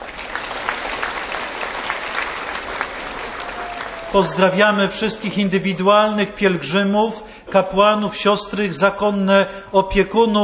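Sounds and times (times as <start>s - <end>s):
warm applause from pilgrims: 0.0s - 5.0s
speech: 4.1s - 10.4s.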